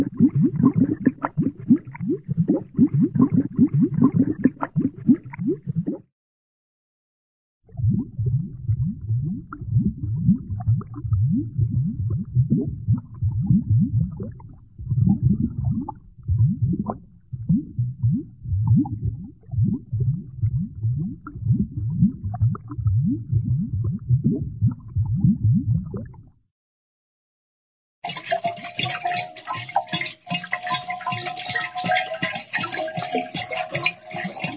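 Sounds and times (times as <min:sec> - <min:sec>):
small cartoon water bubbles: 0:00.0 - 0:06.1, 0:07.7 - 0:26.4, 0:28.0 - 0:34.5.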